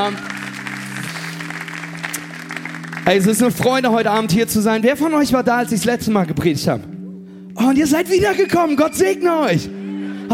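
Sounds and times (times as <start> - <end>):
speech: 0.0 - 0.4, 3.1 - 7.0, 7.6 - 10.3
audience applauding the band: 0.0 - 4.3.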